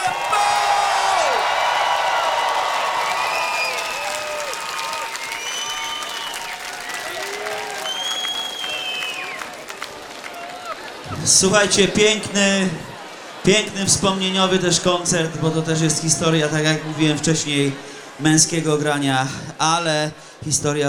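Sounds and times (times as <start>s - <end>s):
concert audience clapping at a Polish hip-hop show in Warsaw: 0.0s - 11.2s
concert audience whoops and whistles: 3.1s - 6.6s, 7.8s - 9.4s
speech: 11.3s - 12.9s, 13.5s - 20.8s.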